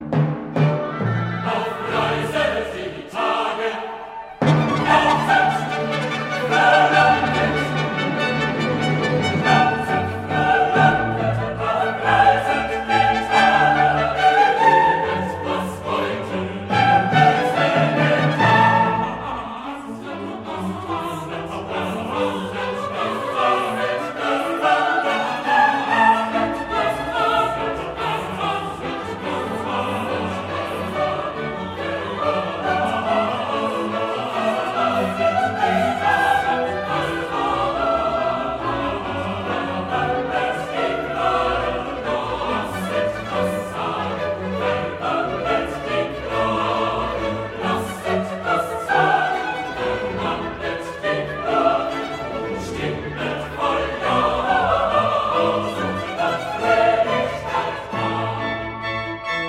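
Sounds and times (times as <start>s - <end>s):
choir singing: 0.0s - 59.4s.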